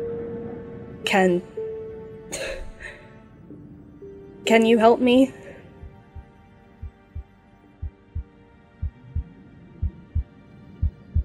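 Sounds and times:
speech: 1.0 - 1.6, 4.5 - 5.4
heartbeat sound effect: 5.8 - 11.2.

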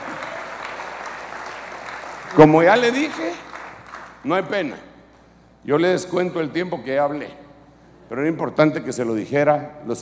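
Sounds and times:
audience applause: 0.0 - 4.2
speech: 2.3 - 3.5, 4.2 - 4.9, 5.6 - 7.4, 8.1 - 9.9.

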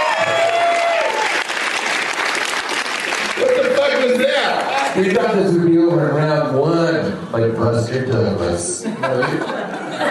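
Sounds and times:
audience applause: 0.0 - 5.2
speech: 5.0 - 10.1
laughter: 8.7 - 10.1.

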